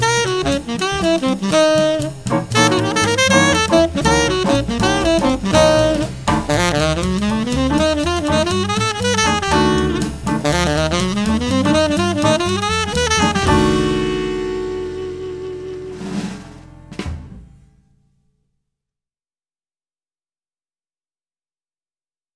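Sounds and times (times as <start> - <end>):
fast tenor sax licks: 0.0 - 17.0.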